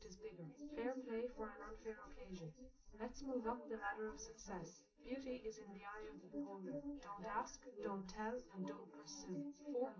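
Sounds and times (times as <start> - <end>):
woman's voice recorded live: 0.0 - 9.9.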